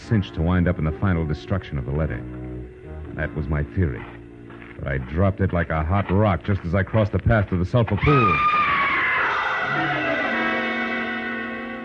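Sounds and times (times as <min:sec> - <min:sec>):
speech: 0:00.1 - 0:02.4, 0:03.2 - 0:04.2, 0:04.8 - 0:08.6
woman screaming: 0:08.0 - 0:10.8.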